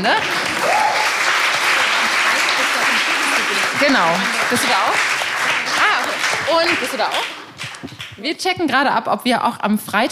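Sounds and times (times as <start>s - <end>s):
speech: 0.0s - 0.5s, 3.8s - 5.1s, 6.5s - 7.4s, 8.2s - 10.0s
audience applause: 0.0s - 8.2s
person whooping: 0.6s - 1.2s.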